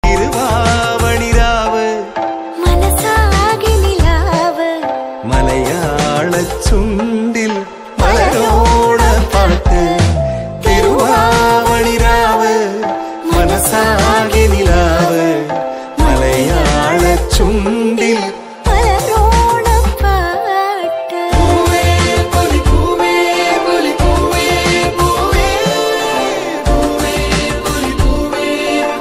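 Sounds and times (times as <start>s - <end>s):
Onam lyrical song: 0.0s - 29.0s.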